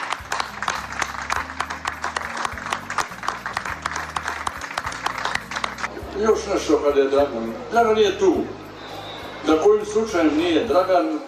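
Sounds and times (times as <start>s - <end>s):
audience applause given in tribute to a man's work: 0.0s - 5.9s
speech: 6.2s - 8.6s, 9.5s - 11.2s.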